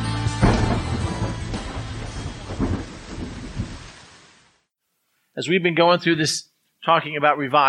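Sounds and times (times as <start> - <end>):
rain falling: 0.1 - 4.7
deep low rumbles of thunder: 0.4 - 4.6
speech: 5.4 - 7.6.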